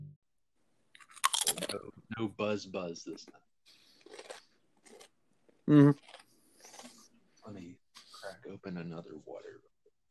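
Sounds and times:
crunching a nacho cheese Dorito chip: 0:01.0 - 0:01.8, 0:03.8 - 0:07.0
speech: 0:01.7 - 0:03.5, 0:05.7 - 0:06.2, 0:07.5 - 0:09.7.

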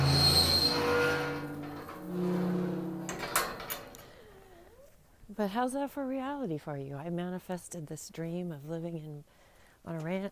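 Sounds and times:
creaking gate being opened: 0:00.0 - 0:04.4
speech: 0:05.4 - 0:10.3.

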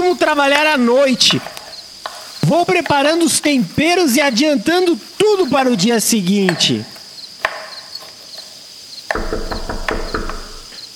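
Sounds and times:
speech: 0:00.1 - 0:01.6, 0:02.4 - 0:06.9
knocking on a door: 0:09.1 - 0:10.7.

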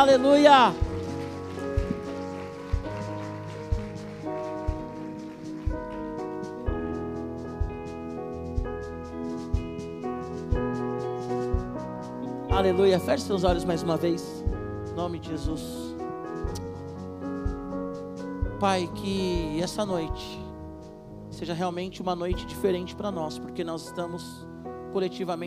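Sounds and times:
speech: 0:00.0 - 0:00.9, 0:12.6 - 0:14.4, 0:15.0 - 0:15.8, 0:18.6 - 0:20.4, 0:21.4 - 0:25.4
regular low beat: 0:00.0 - 0:21.7
keyboard chords: 0:00.0 - 0:25.4
audience applause: 0:00.7 - 0:06.6.

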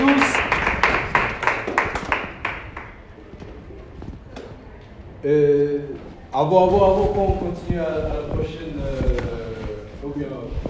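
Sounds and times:
audience applause: 0:00.0 - 0:03.0
speech: 0:05.3 - 0:05.6, 0:06.4 - 0:09.1, 0:10.1 - 0:10.6.

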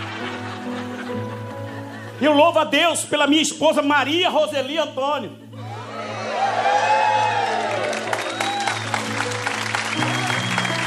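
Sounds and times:
laughter: 0:00.0 - 0:02.8
speech: 0:02.2 - 0:05.4
cheers and whoops: 0:05.6 - 0:09.2, 0:10.0 - 0:10.8
audience applause: 0:05.9 - 0:10.8.

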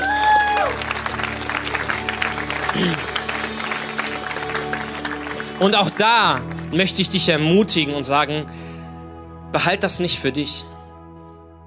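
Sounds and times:
audience applause: 0:00.0 - 0:07.0
sustained musical tone: 0:00.8 - 0:10.4
speech: 0:02.8 - 0:03.1, 0:05.6 - 0:08.7, 0:09.5 - 0:10.8.

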